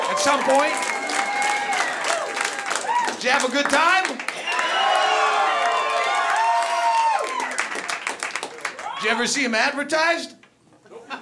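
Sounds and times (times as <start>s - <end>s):
audience cheering and whooping: 0.0s - 3.2s, 4.3s - 8.0s, 8.6s - 9.2s
audience applause: 0.0s - 9.1s
speech: 0.2s - 0.9s, 3.2s - 4.3s, 9.0s - 10.4s.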